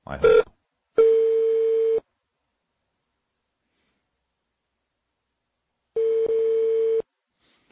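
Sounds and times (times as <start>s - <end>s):
telephone beeps: 1.0s - 2.0s, 6.0s - 7.0s.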